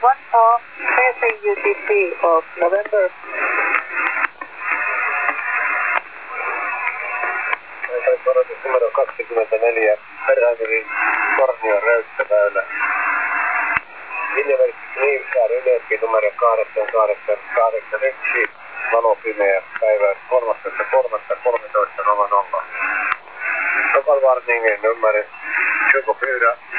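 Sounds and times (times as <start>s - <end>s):
unknown HF shortwave radio stations: 0.0s - 26.7s.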